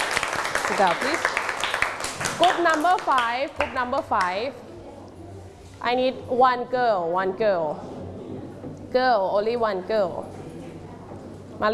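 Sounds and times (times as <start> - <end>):
class clapping hands: 0.0 - 4.4
speech: 0.7 - 1.4, 2.2 - 4.6, 5.8 - 7.9, 8.9 - 10.4.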